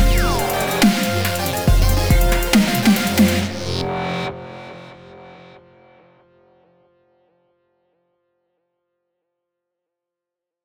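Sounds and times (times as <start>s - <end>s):
dubstep remix of a theme: 0.0s - 4.3s.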